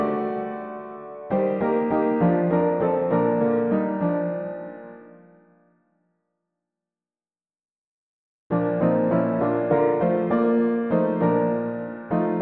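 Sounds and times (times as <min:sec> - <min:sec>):
mono piano piece: 0:00.0 - 0:05.6, 0:08.5 - 0:12.3.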